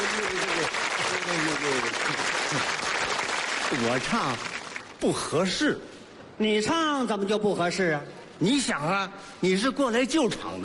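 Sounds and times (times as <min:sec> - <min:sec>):
audience applause: 0:00.0 - 0:05.0
speech: 0:03.8 - 0:10.6.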